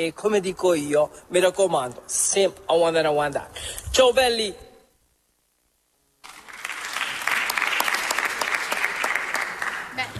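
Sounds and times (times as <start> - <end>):
speech: 0.0 - 4.7
applause: 6.2 - 10.1.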